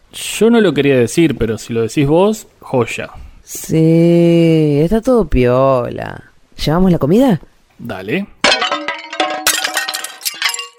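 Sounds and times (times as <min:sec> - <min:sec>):
speech: 0:00.1 - 0:08.3
serving dish of food crashing on the floor: 0:08.4 - 0:10.7.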